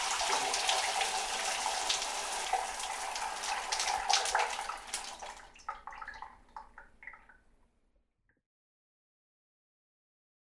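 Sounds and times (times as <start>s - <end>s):
water pouring: 0.0s - 7.4s.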